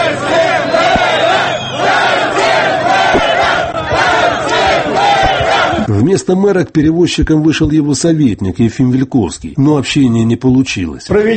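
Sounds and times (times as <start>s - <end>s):
protesters shouting outside city hall: 0.0s - 5.9s
speech: 6.1s - 11.3s.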